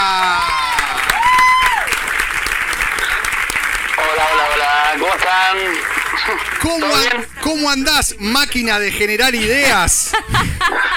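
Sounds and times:
applause: 0.0s - 7.3s
speech: 5.3s - 10.9s
laughter: 9.4s - 10.9s.

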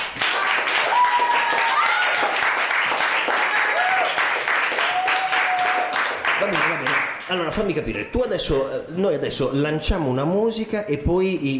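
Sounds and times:
crowd applause sound effect: 0.0s - 7.2s
speech: 7.3s - 11.5s.

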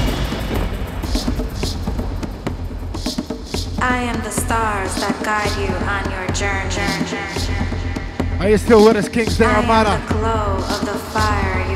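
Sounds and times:
thunder in the night sky: 0.0s - 3.8s
speech: 3.8s - 7.6s, 8.4s - 11.7s.

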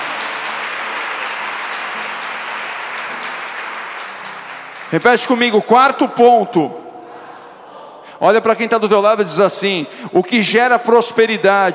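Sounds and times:
crowd clapping: 0.0s - 6.2s
speech: 4.9s - 6.8s, 8.2s - 11.7s.

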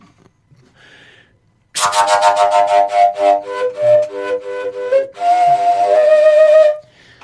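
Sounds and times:
shepherd's flute played overblown in high short tones: 1.8s - 6.9s.

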